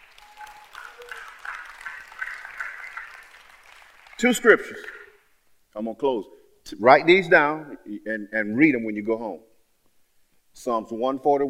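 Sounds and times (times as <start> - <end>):
audience clapping: 0.0 - 5.2
speech: 4.2 - 5.0, 5.8 - 9.5, 10.6 - 11.4.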